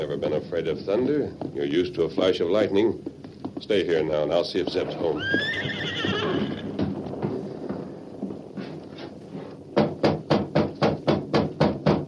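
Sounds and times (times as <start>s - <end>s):
speech: 0.0s - 6.6s
horse hooves clopping: 0.0s - 12.0s
nervous horse neighing: 4.8s - 6.8s.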